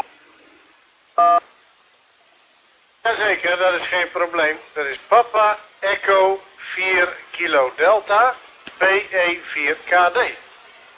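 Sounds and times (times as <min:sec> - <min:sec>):
radio hiss: 0:00.0 - 0:01.7, 0:03.0 - 0:10.9
dual-tone beep over radio transmission: 0:01.2 - 0:01.4
speech: 0:03.1 - 0:10.4.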